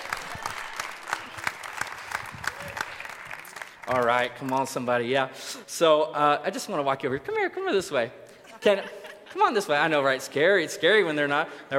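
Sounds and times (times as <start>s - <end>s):
audience applause: 0.0s - 4.9s
speech: 3.9s - 11.7s.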